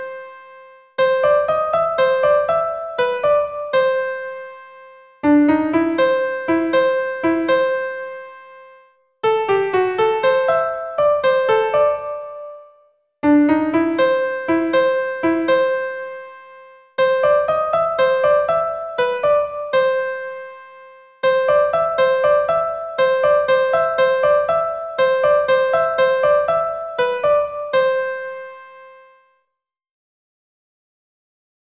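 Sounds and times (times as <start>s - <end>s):
ragtime melody only: 1.0s - 4.6s, 5.3s - 8.3s, 9.3s - 12.6s, 13.3s - 16.2s, 17.0s - 20.5s, 21.3s - 28.7s.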